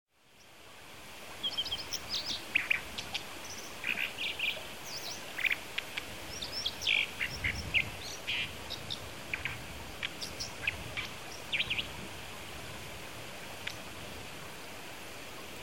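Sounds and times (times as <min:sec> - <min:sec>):
Brown dipper giving sharp high chirping calls in Kitami: 0:01.4 - 0:05.6, 0:06.2 - 0:11.9.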